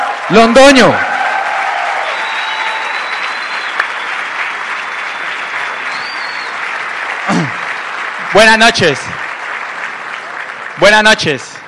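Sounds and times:
audience applause: 0.0s - 11.6s
speech: 0.3s - 1.1s, 8.3s - 9.2s, 10.8s - 11.5s
whistle: 2.1s - 4.0s, 5.9s - 6.6s.

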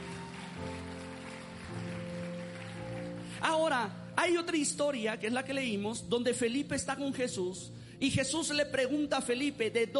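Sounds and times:
audience applause: 0.0s - 3.4s
speech: 3.4s - 9.9s.

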